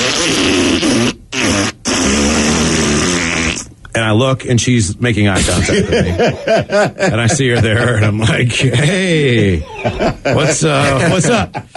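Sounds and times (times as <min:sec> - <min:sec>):
fart noise blown with the mouth: 0:00.0 - 0:03.8
speech: 0:04.2 - 0:11.7
laughter: 0:05.4 - 0:11.7.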